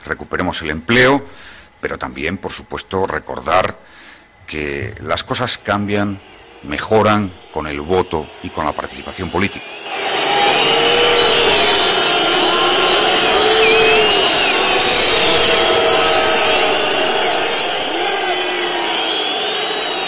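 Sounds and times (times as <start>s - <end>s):
speech: 0.1s - 10.1s
crowd booing: 7.4s - 20.0s.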